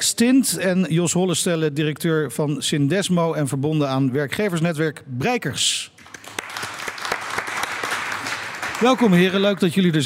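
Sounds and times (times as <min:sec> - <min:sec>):
speech: 0:00.0 - 0:06.0, 0:08.8 - 0:10.0
audience applause: 0:06.0 - 0:09.5.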